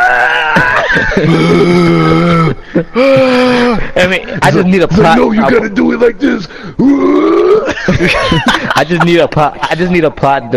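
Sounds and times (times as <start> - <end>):
person voicing a mock anguished scream: 0.0 - 3.8, 6.8 - 7.7
laughter: 0.1 - 6.5, 7.3 - 10.0
speech: 1.0 - 1.9, 2.7 - 10.5.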